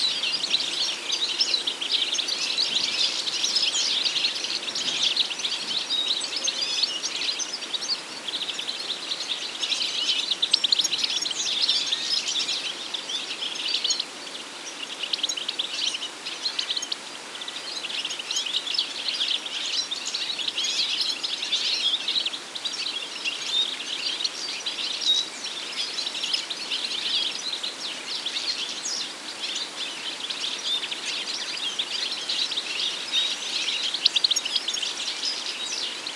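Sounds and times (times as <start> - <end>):
goldfinch: 0.0 - 36.1.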